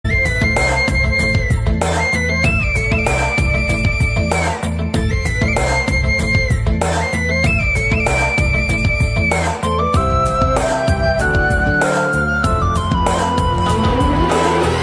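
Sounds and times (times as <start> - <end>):
romantic background music: 0.1 - 14.8.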